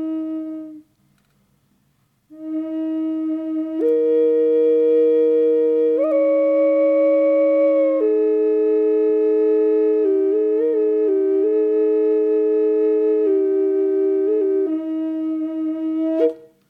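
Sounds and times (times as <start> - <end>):
aromatic cedar double drone flute in E440 without reverb: 0.0 - 0.9, 2.3 - 16.5.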